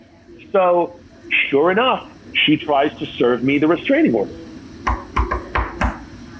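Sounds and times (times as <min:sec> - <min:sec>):
speech: 0:00.5 - 0:04.4
loud knocks on a door: 0:04.8 - 0:06.0.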